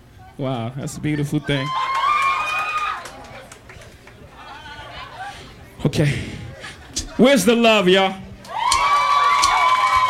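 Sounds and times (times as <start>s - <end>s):
speech: 0.4s - 1.9s, 5.8s - 6.3s, 7.2s - 8.2s
crowd cheering on the World Cup: 1.4s - 5.5s, 8.4s - 10.0s.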